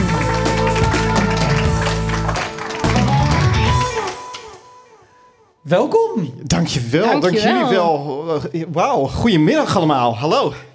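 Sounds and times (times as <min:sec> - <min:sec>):
audience applause: 0:00.0 - 0:04.7
speech: 0:05.7 - 0:10.7.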